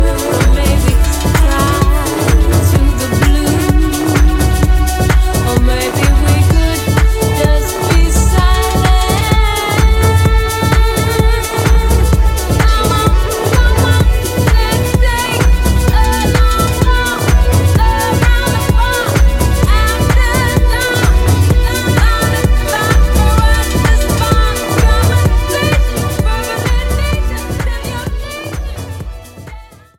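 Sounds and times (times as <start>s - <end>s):
vocals: 0.0s - 29.9s.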